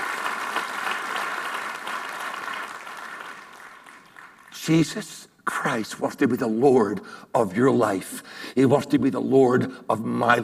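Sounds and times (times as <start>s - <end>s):
audience applause: 0.0s - 4.6s
speech: 4.7s - 10.4s.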